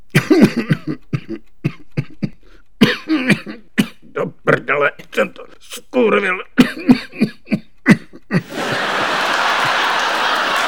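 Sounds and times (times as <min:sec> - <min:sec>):
person coughing in place of a swear word: 0:00.1 - 0:08.5
speech: 0:00.4 - 0:01.0, 0:06.0 - 0:06.5
laughter: 0:08.2 - 0:10.6.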